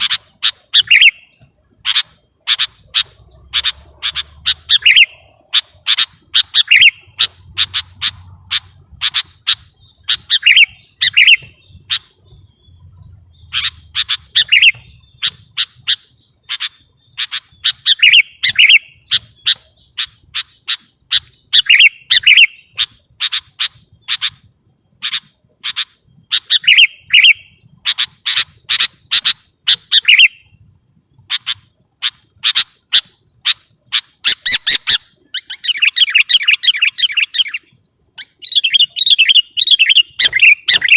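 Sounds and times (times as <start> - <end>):
sooty-headed bulbul song: 0.0 - 40.9.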